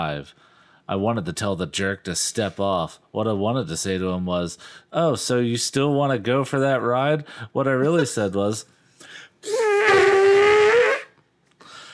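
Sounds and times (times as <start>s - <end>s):
speech: 0.0s - 10.0s
person imitating an elephant trumpeting: 9.4s - 11.2s.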